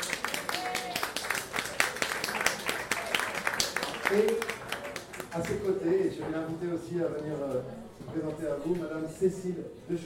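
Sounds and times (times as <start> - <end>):
audience applause at an evening talk on environment and biodiversity: 0.0 - 5.8
speech: 4.1 - 4.5, 5.3 - 10.0.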